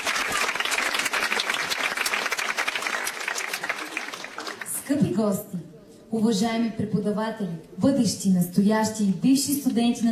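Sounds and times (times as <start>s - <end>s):
concert audience applause: 0.0s - 4.9s
speech: 4.9s - 10.1s.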